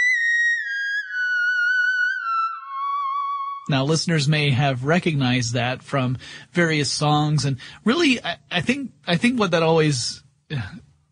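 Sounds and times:
theremin playing: 0:00.0 - 0:03.7
speech: 0:03.7 - 0:10.9.

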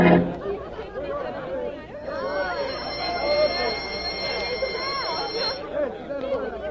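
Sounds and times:
crowd of children's voices chattering: 0:00.2 - 0:06.6
loud buzzing school bell ringing: 0:02.1 - 0:05.6.

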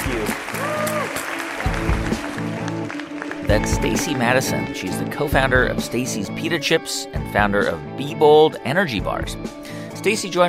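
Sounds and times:
audience clapping at a live onstage interview event: 0:00.0 - 0:04.4
walk-off music with low sustained notes: 0:01.6 - 0:10.4
speech: 0:03.5 - 0:10.4.

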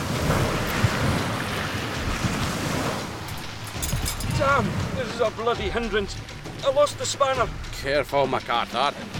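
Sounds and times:
storm waves crashing at sea: 0:00.0 - 0:07.0
wind at sea: 0:00.0 - 0:09.1
speech: 0:04.4 - 0:09.1.

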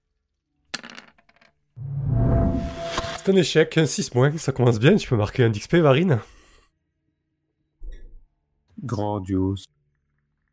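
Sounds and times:
dice rolling across a surface: 0:00.7 - 0:01.6
speech: 0:03.2 - 0:06.4, 0:08.9 - 0:09.8.

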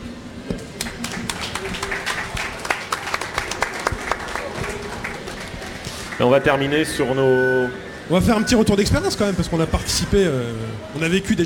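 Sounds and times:
audience applause: 0:00.6 - 0:06.5
speech: 0:06.2 - 0:11.4.

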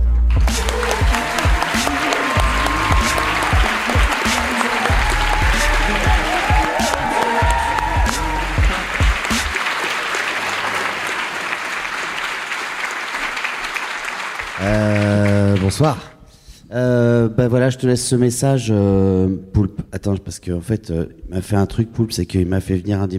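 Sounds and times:
audience applause: 0:00.3 - 0:16.0
speech: 0:15.8 - 0:16.1, 0:16.7 - 0:23.1.

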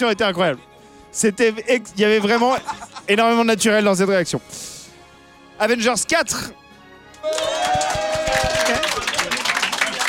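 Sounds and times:
speech: 0:00.0 - 0:04.8, 0:05.6 - 0:06.6, 0:07.2 - 0:09.1
laughter: 0:02.1 - 0:03.3
audience applause, only half clapping: 0:07.2 - 0:10.0.

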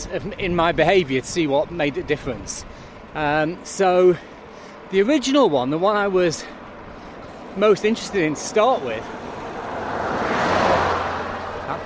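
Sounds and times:
speech: 0:00.0 - 0:04.3, 0:04.9 - 0:06.6, 0:07.6 - 0:09.3
car overtaking a cyclist on the road: 0:08.8 - 0:11.8.

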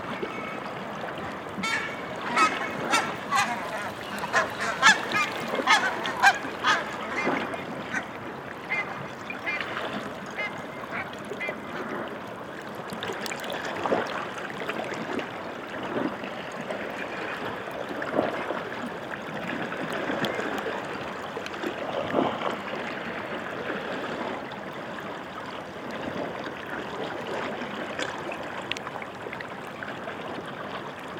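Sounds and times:
meltwater gurgling and trickling at the foot of Skaftafellsjökull glacier in Iceland: 0:00.0 - 0:31.1.

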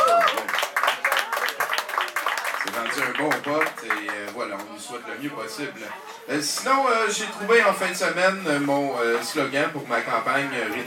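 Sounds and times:
audience applause: 0:00.0 - 0:04.6
speech: 0:02.9 - 0:10.8.

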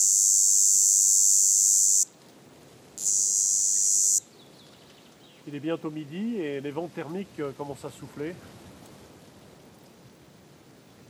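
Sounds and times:
red cicada song: 0:00.0 - 0:02.1, 0:03.0 - 0:04.3
speech: 0:05.5 - 0:08.6.

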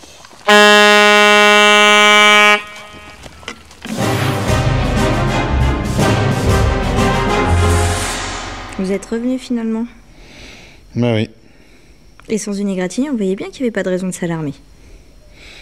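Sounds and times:
horn blast: 0:00.5 - 0:03.2, 0:03.9 - 0:10.1
speech: 0:08.9 - 0:10.0, 0:10.9 - 0:11.4, 0:12.3 - 0:14.7.

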